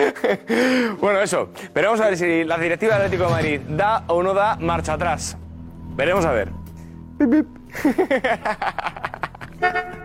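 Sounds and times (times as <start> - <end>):
laughter: 0.0 - 0.6, 7.2 - 10.0
speech: 0.1 - 5.4, 6.0 - 6.6, 7.2 - 10.0
car horn sound effect honking: 9.6 - 10.0.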